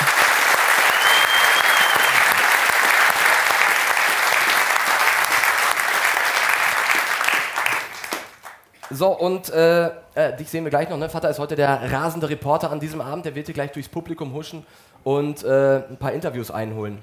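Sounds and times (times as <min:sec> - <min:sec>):
audience applause: 0:00.0 - 0:08.6
speech: 0:09.0 - 0:17.0.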